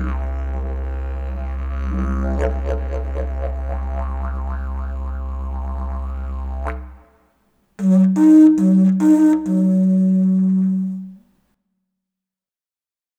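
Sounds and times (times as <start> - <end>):
didgeridoo: 0.0 - 7.1, 7.8 - 11.2.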